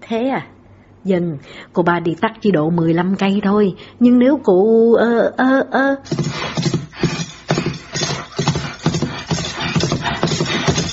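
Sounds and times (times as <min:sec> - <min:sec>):
speech: 0:00.1 - 0:06.7
horse hooves galloping: 0:06.1 - 0:10.9.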